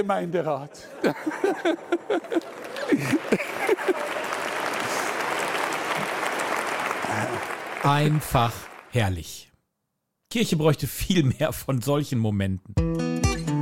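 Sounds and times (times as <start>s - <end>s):
speech: 0.0s - 4.3s, 7.2s - 9.5s, 10.3s - 13.2s
laughter: 0.6s - 5.2s
applause: 2.0s - 9.2s.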